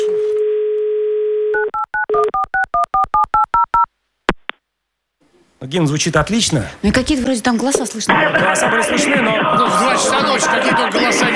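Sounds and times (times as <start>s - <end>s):
telephone dial tone: 0.0s - 3.7s
telephone touch-tone dialing beeps: 1.5s - 3.9s
speech: 5.6s - 11.3s
laughter: 8.1s - 11.3s.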